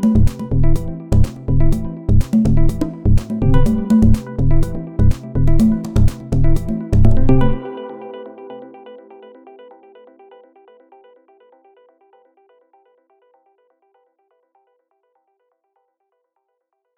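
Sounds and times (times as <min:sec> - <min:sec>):
basic percussion hits: 0:00.0 - 0:07.6.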